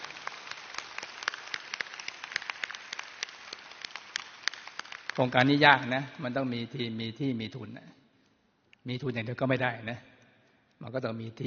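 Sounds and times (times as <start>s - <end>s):
audience applause: 0.0s - 5.6s
speech: 5.2s - 8.0s, 8.8s - 10.1s, 10.8s - 11.4s.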